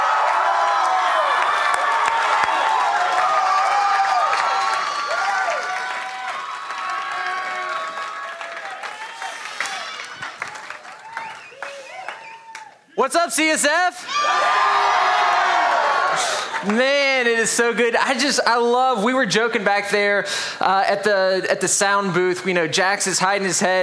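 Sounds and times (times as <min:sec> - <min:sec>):
audience clapping as a speaker is welcomed to the stage: 0:00.0 - 0:12.8, 0:15.8 - 0:16.9
audience whoops and shouting voices: 0:00.0 - 0:12.8, 0:14.0 - 0:16.5
speech: 0:13.0 - 0:14.7, 0:16.6 - 0:23.8.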